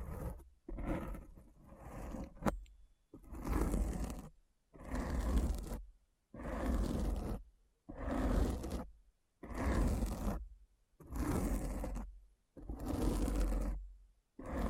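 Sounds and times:
deep rough scratching: 0:00.0 - 0:02.5, 0:03.2 - 0:05.8, 0:06.4 - 0:08.9, 0:09.5 - 0:10.4, 0:11.1 - 0:12.1, 0:12.7 - 0:13.8, 0:14.4 - 0:14.6.

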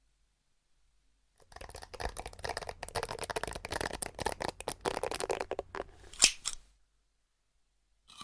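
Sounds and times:
scratching and tapping: 0:01.4 - 0:06.5.

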